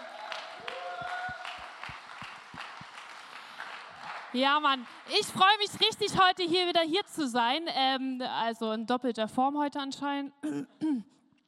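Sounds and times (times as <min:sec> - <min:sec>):
applause: 0:00.0 - 0:06.4
speech: 0:04.3 - 0:11.2.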